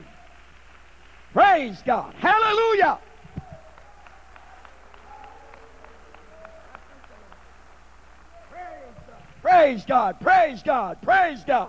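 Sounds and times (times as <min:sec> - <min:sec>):
voices calling out: 0:00.0 - 0:11.6
speech: 0:01.6 - 0:03.1, 0:09.5 - 0:11.6
audience clapping in a steady rhythmic beat: 0:02.6 - 0:09.0.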